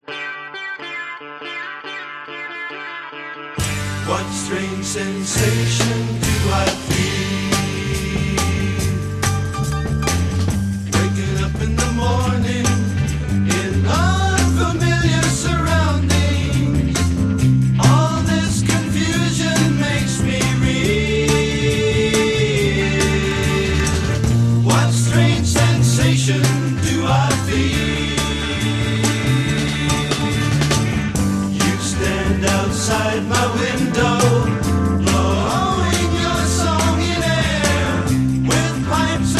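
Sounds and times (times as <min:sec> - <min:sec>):
vocal music: 0:03.6 - 0:39.3.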